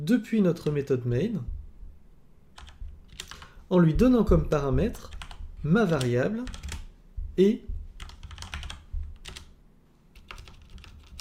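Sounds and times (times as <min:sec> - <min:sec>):
speech: 0:00.0 - 0:01.6, 0:03.7 - 0:06.6, 0:07.4 - 0:07.7
typing code on a computer keyboard: 0:02.6 - 0:03.6, 0:05.0 - 0:06.9, 0:08.0 - 0:09.5, 0:10.2 - 0:11.1.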